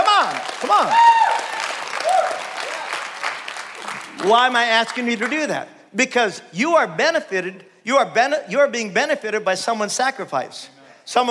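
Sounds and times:
audience clapping: 0.0s - 5.6s
speech: 0.7s - 1.1s, 4.2s - 11.2s.

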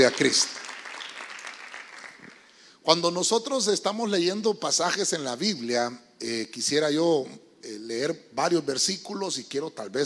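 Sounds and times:
speech: 0.0s - 0.6s, 2.9s - 10.0s
audience clapping: 0.0s - 2.6s.

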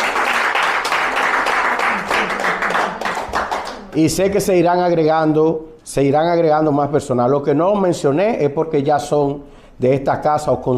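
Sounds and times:
audience applause: 0.0s - 3.9s
speech: 4.0s - 10.7s.

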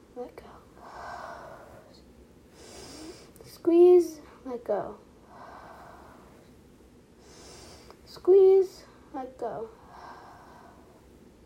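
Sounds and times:
speech: 0.2s - 0.5s, 3.6s - 5.1s, 8.3s - 9.8s
slow breathing in through nose and out through mouth: 0.7s - 3.4s, 5.2s - 8.1s, 9.8s - 11.3s.

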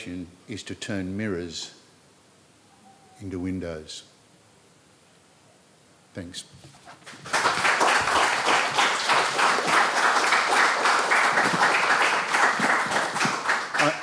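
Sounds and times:
speech: 0.0s - 1.8s, 3.2s - 4.1s, 6.2s - 7.4s
audience applause: 7.0s - 14.0s.

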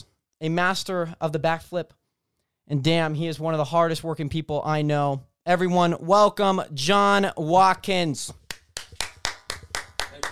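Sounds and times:
speech: 0.4s - 2.0s, 2.7s - 8.4s
person clapping hands: 8.3s - 10.3s.

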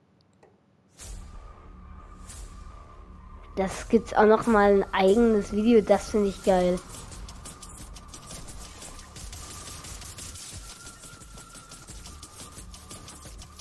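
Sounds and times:
speech: 3.6s - 7.1s
rapid minigun-like weapon fire in the video game Fortnite: 6.8s - 13.5s.

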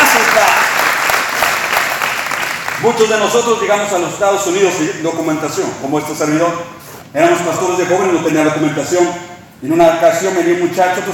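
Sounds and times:
applause: 0.0s - 3.1s
speech: 2.8s - 11.1s.

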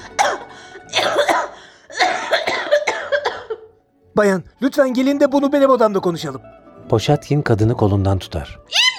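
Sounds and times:
coughing: 0.0s - 3.8s
speech: 4.2s - 8.8s.

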